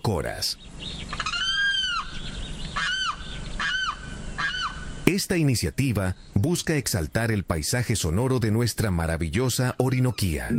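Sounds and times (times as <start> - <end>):
speech: 0.0 - 1.2, 5.1 - 10.5
hiss: 0.0 - 10.5
limpkin wailing cries: 1.0 - 5.1.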